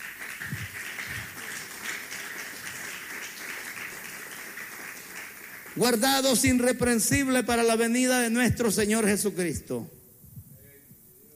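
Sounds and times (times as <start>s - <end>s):
audience clapping: 0.0s - 7.4s
speech: 5.8s - 10.0s.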